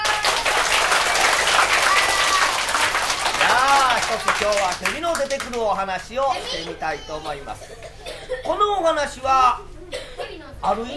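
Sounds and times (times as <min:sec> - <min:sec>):
audience applause at a storytelling event: 0:00.0 - 0:05.7
speech: 0:04.2 - 0:07.9, 0:08.5 - 0:09.7, 0:10.6 - 0:10.9.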